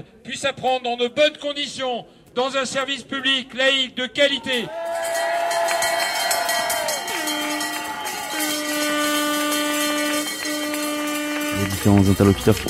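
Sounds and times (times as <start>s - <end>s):
speech: 0.0s - 4.8s, 11.6s - 12.6s
crowd of about 200 protesters gathered outside a prefecture over schooling in the Jura: 4.4s - 12.6s.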